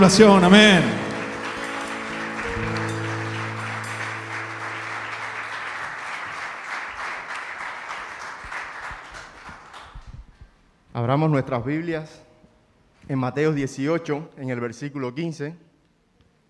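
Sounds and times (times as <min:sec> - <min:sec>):
speech: 0:00.0 - 0:01.0, 0:11.0 - 0:12.3, 0:13.1 - 0:15.7
low musical tone: 0:00.0 - 0:06.2
crowd applause: 0:00.0 - 0:10.1.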